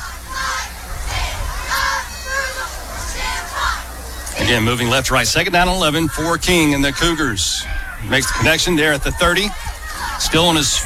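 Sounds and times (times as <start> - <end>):
large stadium crowd roaring and jeering in disapproval at a penalty: 0.0 - 10.8
speech: 4.5 - 9.6, 10.3 - 10.8.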